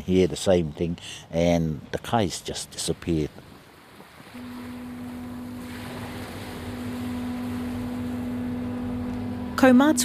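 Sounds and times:
speech: 0.0 - 3.5, 9.6 - 10.0
wind: 0.0 - 10.0
water washing: 4.0 - 9.8
barge engine drone on the crossing from Omokoroa to Matakana Island: 4.3 - 10.0.

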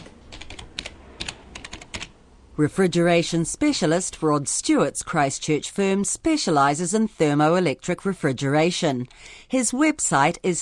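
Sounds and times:
rapid typing on a computer keyboard: 0.0 - 2.1
speech: 2.6 - 10.6.

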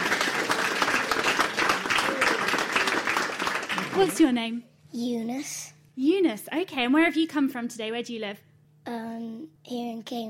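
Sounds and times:
audience applause: 0.0 - 4.4
speech: 4.0 - 10.2.

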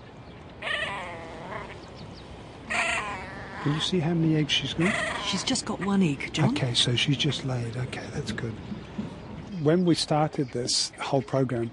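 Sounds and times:
grebe calling at its nest: 0.6 - 1.8, 2.7 - 4.1, 4.7 - 6.0
speech: 3.6 - 8.8, 9.6 - 11.7.

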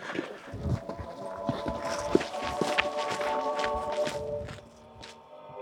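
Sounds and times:
footsteps of people walking down a path carrying a box: 0.0 - 5.3.

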